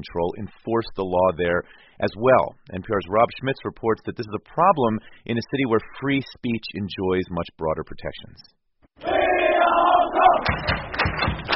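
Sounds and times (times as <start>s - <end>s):
speech: 0.0s - 9.1s, 10.4s - 11.0s
huge stadium crowd chanting a cheer: 9.0s - 10.5s
people shouting: 9.0s - 10.7s
rhythmic thumping beats: 10.4s - 11.5s.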